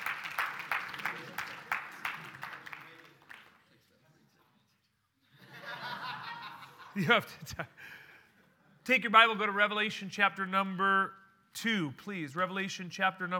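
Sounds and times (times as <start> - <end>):
audience applause: 0.0 - 3.6
laughter: 5.3 - 7.8
speech: 7.0 - 8.0, 8.8 - 13.3.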